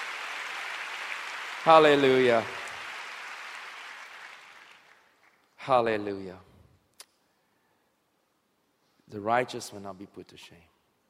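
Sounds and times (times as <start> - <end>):
audience clapping: 0.0 - 5.5
speech: 1.6 - 2.6, 5.6 - 6.5, 9.1 - 10.7.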